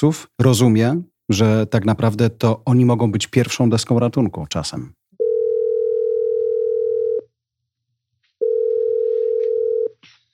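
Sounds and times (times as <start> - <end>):
speech: 0.0 - 5.0
telephone ringing tone beeps while calling: 5.2 - 7.3, 8.4 - 9.9.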